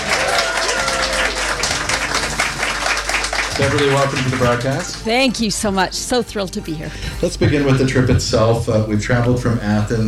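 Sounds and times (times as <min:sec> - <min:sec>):
audience applause: 0:00.0 - 0:05.8
speech: 0:03.6 - 0:10.0.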